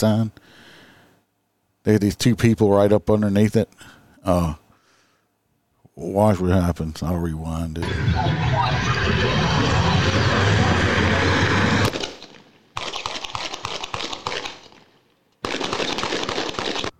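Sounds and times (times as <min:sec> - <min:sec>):
speech: 0:00.0 - 0:00.6, 0:01.8 - 0:04.6, 0:06.0 - 0:11.1
gunshots played back from a video: 0:07.8 - 0:16.9.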